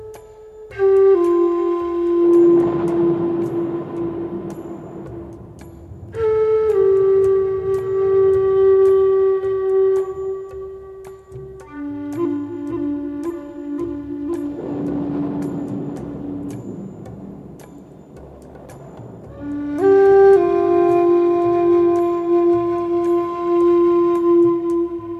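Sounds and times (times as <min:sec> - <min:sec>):
relaxing Native American flute music: 0:00.0 - 0:25.1
thunder: 0:02.0 - 0:09.7, 0:13.8 - 0:23.8.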